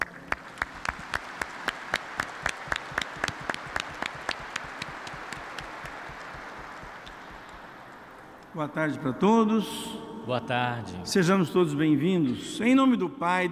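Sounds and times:
audience clapping in a reverberant space: 0:00.0 - 0:08.5
speech: 0:08.6 - 0:13.5.

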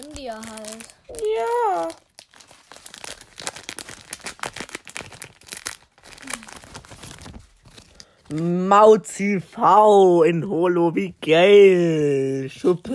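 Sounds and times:
foil trading card booster pack being torn open: 0:00.0 - 0:08.4
speech: 0:00.3 - 0:02.0, 0:08.3 - 0:12.9.

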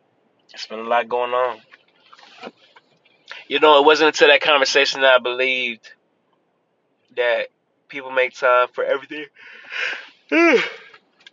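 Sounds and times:
speech: 0:00.5 - 0:01.7, 0:02.4 - 0:02.6, 0:03.5 - 0:06.0, 0:07.1 - 0:10.8
person yawning: 0:10.3 - 0:10.9.

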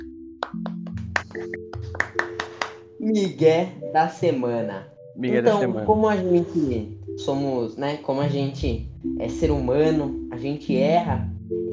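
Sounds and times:
hand clapping: 0:00.0 - 0:02.9
speech: 0:01.4 - 0:11.7.

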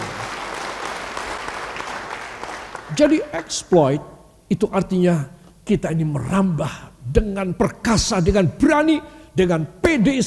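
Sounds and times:
audience applause: 0:00.0 - 0:03.2
speech: 0:02.9 - 0:10.2.

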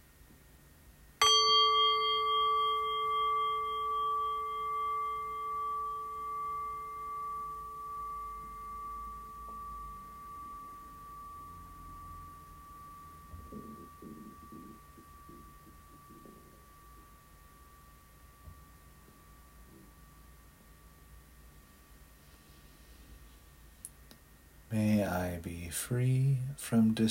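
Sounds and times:
bell ringing: 0:01.2 - 0:20.1
speech: 0:24.7 - 0:27.0.

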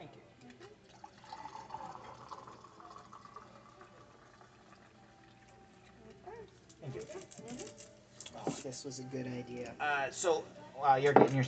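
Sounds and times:
soft chatter: 0:00.0 - 0:11.4
coffee pouring into a cup: 0:00.8 - 0:06.0
speech: 0:08.6 - 0:11.4.

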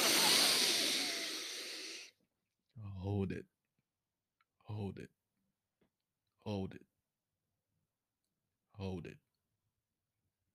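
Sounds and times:
deep breath in during a guided breathing exercise: 0:00.0 - 0:02.1
speech: 0:03.2 - 0:03.6, 0:04.7 - 0:05.2, 0:06.4 - 0:06.9, 0:08.8 - 0:09.2.

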